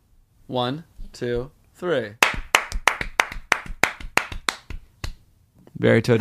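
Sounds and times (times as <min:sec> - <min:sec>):
speech: 0:00.5 - 0:02.2, 0:05.8 - 0:06.2
two people clapping: 0:02.2 - 0:05.2.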